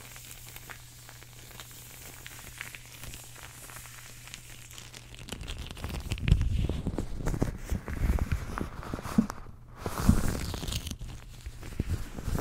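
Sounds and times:
latex and fabric gloves being handled: 0.0s - 12.4s.

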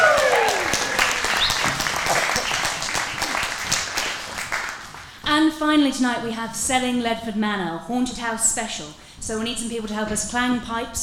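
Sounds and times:
audience applause: 0.0s - 5.1s
speech: 5.6s - 11.0s.

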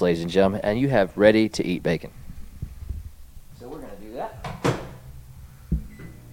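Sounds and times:
speech: 0.0s - 2.2s
low steady hum: 0.0s - 6.3s
microwave oven door clicking shut: 4.5s - 5.0s.

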